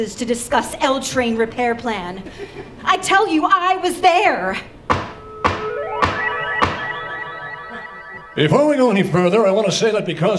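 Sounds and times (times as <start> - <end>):
speech: 0.0 - 4.8, 8.4 - 10.3
gavel banging on a hard surface: 4.9 - 6.8.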